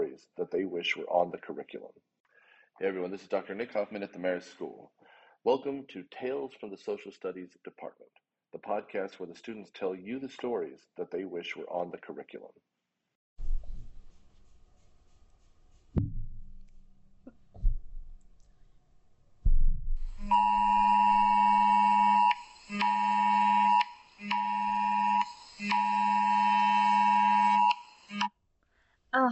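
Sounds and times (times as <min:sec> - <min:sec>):
speech: 0:00.4 - 0:02.2, 0:02.8 - 0:12.7
soft thumps: 0:16.0 - 0:18.2, 0:19.4 - 0:20.0
Amber Alert emergency alert tone: 0:20.1 - 0:28.3.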